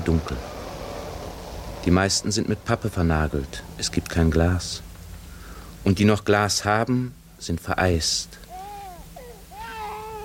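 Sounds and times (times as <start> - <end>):
speech: 0.0 - 0.5, 1.8 - 4.9, 5.8 - 8.4
child crying: 8.5 - 10.2.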